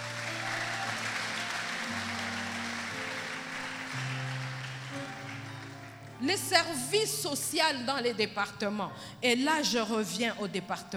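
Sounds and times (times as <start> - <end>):
church congregation applauding: 0.0 - 6.8
speech: 6.2 - 10.9.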